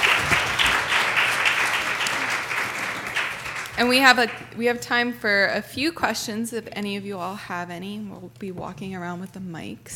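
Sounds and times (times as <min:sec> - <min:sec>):
crowd applauding: 0:00.0 - 0:04.6
speech: 0:03.8 - 0:09.9.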